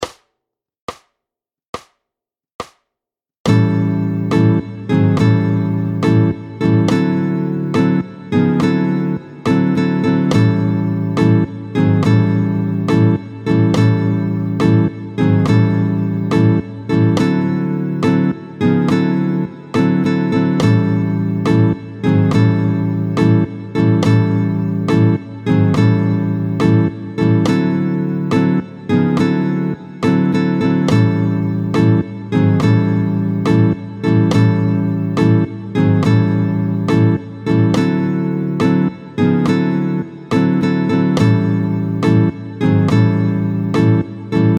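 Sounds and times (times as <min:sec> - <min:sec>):
short binary-rhythm blues music: 0:03.5 - 0:44.5.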